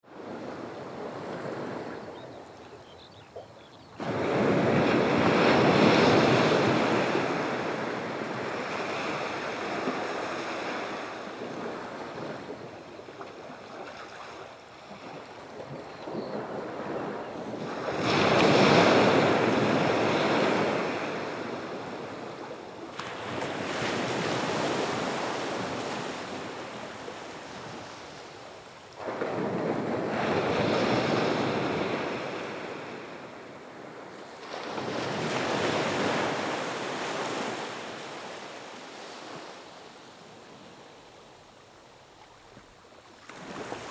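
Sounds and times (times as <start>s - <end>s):
Atlantic Ocean: 0.0s - 43.8s.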